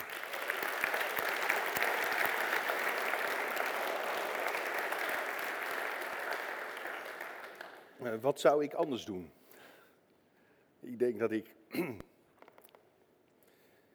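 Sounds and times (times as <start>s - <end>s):
crowd applause: 0.0s - 8.2s
speech: 8.0s - 9.4s, 11.0s - 12.0s.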